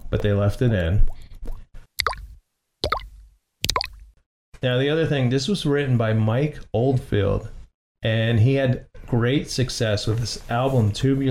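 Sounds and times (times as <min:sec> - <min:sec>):
water dripping: 0:00.0 - 0:04.2
speech: 0:00.1 - 0:01.2, 0:04.6 - 0:11.2.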